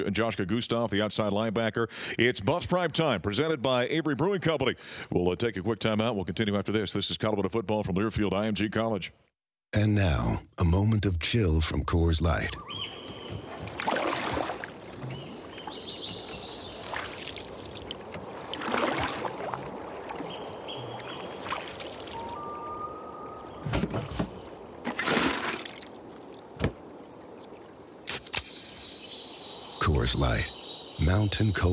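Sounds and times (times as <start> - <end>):
speech: 0.0 - 13.0, 30.2 - 31.7
canoe on water sloshing in a Coors Light beer advert: 12.6 - 28.5.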